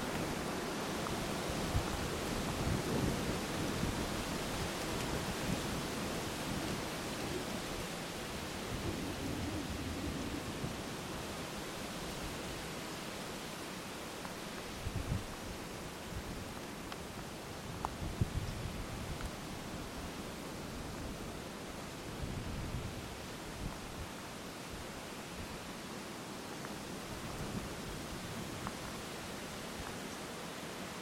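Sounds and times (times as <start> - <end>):
faint ticks and rustles: 0.0 - 9.6, 10.8 - 31.0
high winds blowing through a park: 0.0 - 12.6, 14.8 - 15.6, 17.6 - 19.9, 22.1 - 24.1.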